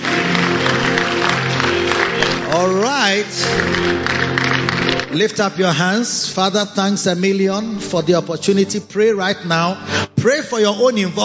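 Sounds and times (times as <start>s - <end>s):
audience clapping hands: 0.0s - 5.8s
speech: 2.6s - 4.2s, 5.2s - 11.2s.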